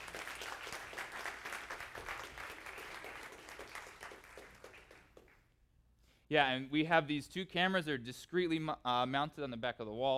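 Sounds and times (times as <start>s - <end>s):
audience clapping: 0.0s - 5.6s
speech: 6.3s - 10.1s.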